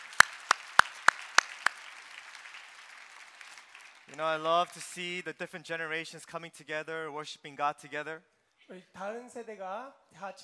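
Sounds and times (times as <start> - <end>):
round of applause: 0.0 - 5.2
speech: 4.1 - 10.4.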